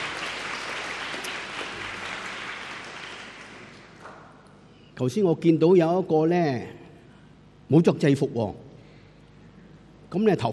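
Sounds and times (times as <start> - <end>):
audience applause: 0.0 - 4.3
speech: 5.0 - 6.8, 7.7 - 8.6, 10.1 - 10.5.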